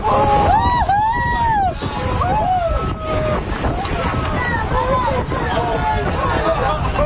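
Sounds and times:
excited passengers: 0:00.0 - 0:07.0
white-beaked dolphins splashing: 0:00.0 - 0:07.0.

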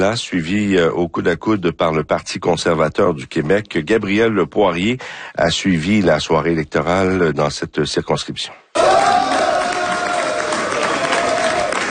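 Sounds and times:
speech: 0:00.0 - 0:08.9
supporters cheering at election victory: 0:08.8 - 0:11.8.

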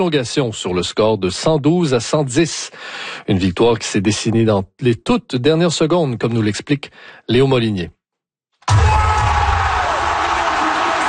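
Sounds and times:
speech: 0:00.0 - 0:08.0
arena crowd cheering after basketball win at Scotiabank Arena: 0:08.7 - 0:11.0.

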